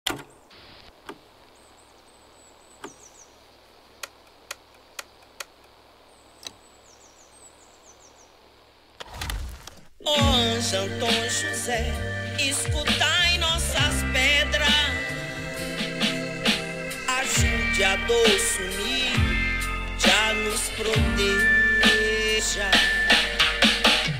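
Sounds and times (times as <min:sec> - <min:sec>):
Brazilian dub and reggae music: 0:10.0 - 0:24.1.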